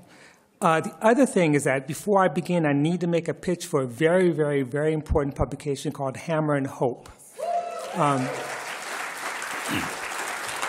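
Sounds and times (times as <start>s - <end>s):
speech: 0.6s - 7.2s, 7.9s - 8.6s, 9.7s - 10.0s
person cheering: 7.4s - 8.5s
audience applause: 7.8s - 10.6s.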